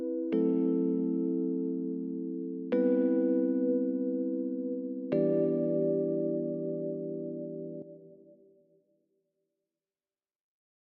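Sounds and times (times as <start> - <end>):
mellow downtempo piano: 0.0 - 8.2.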